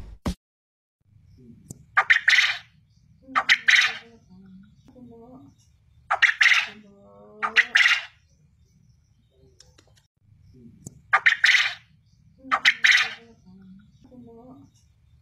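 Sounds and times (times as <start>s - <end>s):
quail calling in rasping triple phrases: 1.9s - 4.2s, 6.1s - 8.2s, 11.1s - 11.9s, 12.5s - 13.4s.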